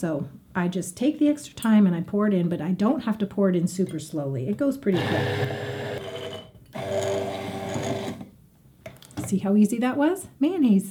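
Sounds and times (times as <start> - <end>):
speech: 0.0 - 5.8, 9.3 - 10.9
blender blending mayonnaise: 4.9 - 8.3.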